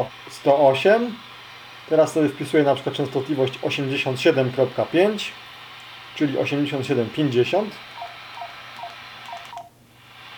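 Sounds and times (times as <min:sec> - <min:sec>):
speech: 0:00.0 - 0:01.3, 0:01.9 - 0:05.5, 0:06.2 - 0:07.9
radio beep when entering frequency: 0:07.9 - 0:09.7.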